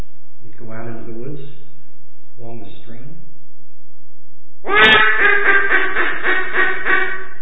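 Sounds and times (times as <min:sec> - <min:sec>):
speech: 0:00.6 - 0:01.6, 0:02.4 - 0:03.3
duck call quacking: 0:04.7 - 0:07.3.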